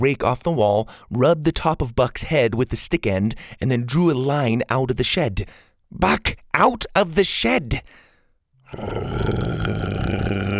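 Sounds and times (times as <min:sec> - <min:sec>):
speech: 0:00.0 - 0:08.0, 0:08.7 - 0:10.5
dinosaur growling: 0:08.7 - 0:10.5.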